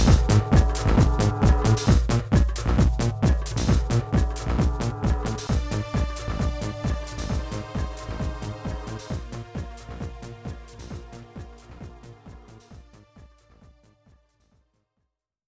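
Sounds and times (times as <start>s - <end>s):
cave ambience: 0.0s - 10.6s.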